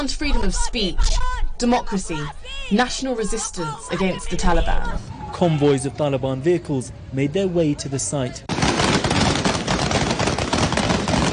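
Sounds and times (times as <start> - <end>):
speech: 0.0 - 9.0
gunshots fired into the air: 8.5 - 11.3.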